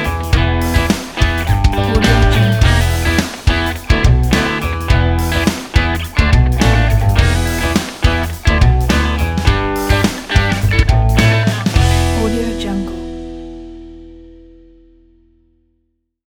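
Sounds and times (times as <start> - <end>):
funk groove: 0.0 - 12.4.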